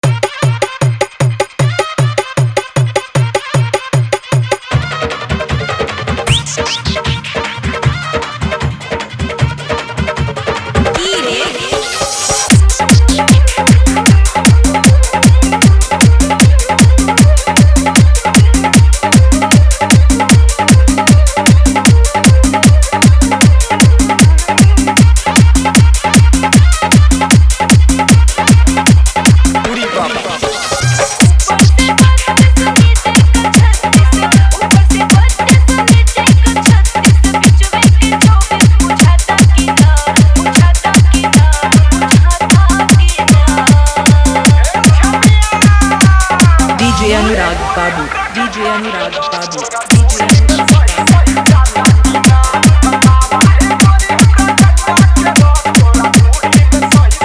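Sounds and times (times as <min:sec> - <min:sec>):
dholak bass garba dance mix: 0:00.0 - 0:57.2.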